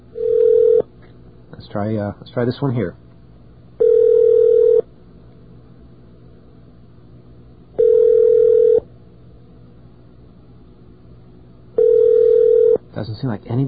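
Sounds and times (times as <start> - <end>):
telephone ringing over the line: 0.2 - 0.8, 3.8 - 4.8, 7.8 - 8.8, 11.8 - 12.8
speech: 1.7 - 3.0, 13.2 - 13.6.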